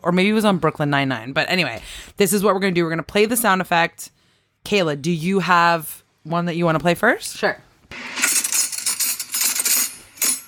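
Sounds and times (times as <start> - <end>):
speech: 0.0 - 8.3
cutlery being grabbed and jostled: 8.0 - 10.4.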